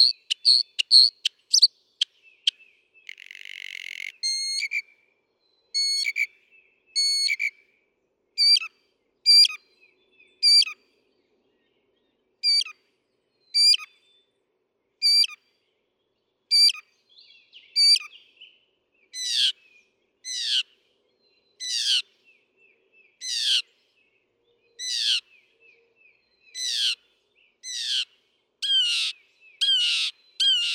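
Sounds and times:
northern mockingbird singing: 0:00.0 - 0:04.9, 0:05.7 - 0:07.6, 0:08.4 - 0:08.7, 0:09.3 - 0:10.8, 0:12.4 - 0:12.8, 0:13.5 - 0:13.9, 0:15.0 - 0:15.4, 0:16.5 - 0:18.5, 0:21.5 - 0:23.8, 0:24.7 - 0:25.5, 0:26.1 - 0:30.7.

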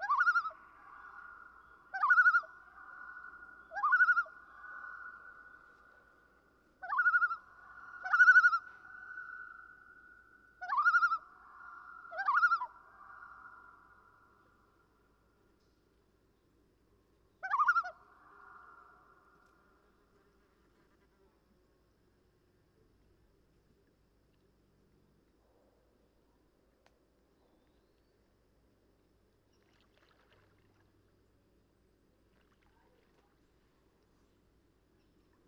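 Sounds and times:
common loon calling: 0:00.0 - 0:05.7, 0:06.8 - 0:09.6, 0:10.6 - 0:13.6, 0:17.4 - 0:18.9.

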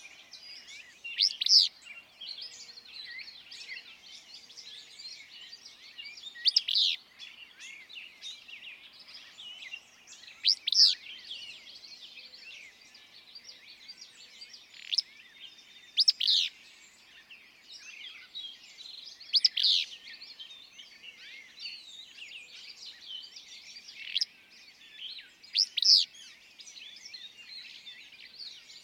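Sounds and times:
willow flycatcher song: 0:00.0 - 0:28.8.

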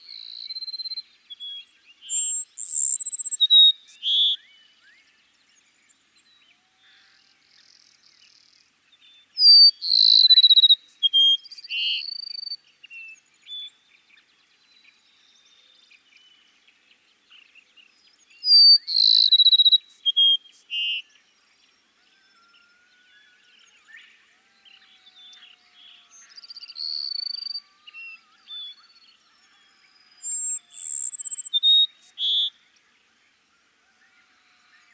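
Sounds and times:
soft bird chirps: 0:00.0 - 0:07.0, 0:07.6 - 0:24.0, 0:24.7 - 0:33.0
Cassin's sparrow singing: 0:00.2 - 0:04.5, 0:09.4 - 0:13.4, 0:18.2 - 0:21.1, 0:30.2 - 0:32.6.

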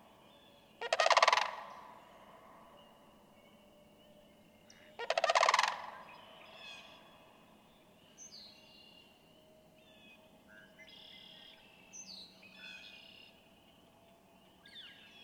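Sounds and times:
sandhill crane rolling rattled calls: 0:00.8 - 0:02.0, 0:05.0 - 0:06.9.

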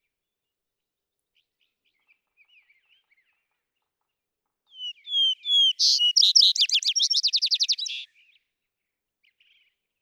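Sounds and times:
vesper sparrow song: 0:04.8 - 0:08.1.

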